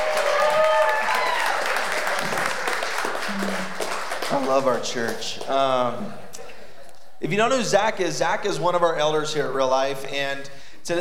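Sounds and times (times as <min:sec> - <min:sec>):
audience applause: 0:00.0 - 0:06.0
speech: 0:04.4 - 0:06.2, 0:07.2 - 0:10.9.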